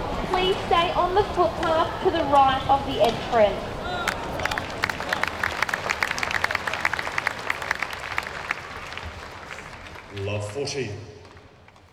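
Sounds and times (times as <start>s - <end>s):
speech: 0.4s - 3.8s, 10.3s - 11.2s
tennis crowd applause at Australian Open: 3.9s - 11.9s.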